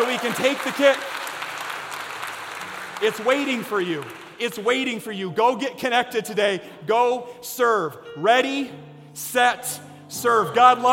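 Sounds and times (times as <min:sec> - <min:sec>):
audience applause: 0:00.0 - 0:04.7
speech: 0:00.2 - 0:01.2, 0:03.0 - 0:10.9.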